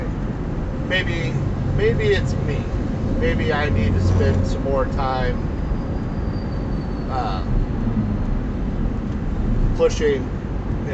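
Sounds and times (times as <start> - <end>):
car road rumble: 0.0 - 10.9
speech: 0.9 - 5.5, 7.1 - 7.8, 9.8 - 10.9.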